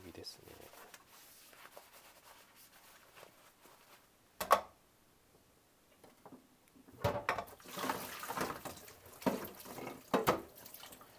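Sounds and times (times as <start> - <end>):
splashes and knocks: 7.0 - 11.0
tap water running over a coffee server being washed: 7.5 - 11.1.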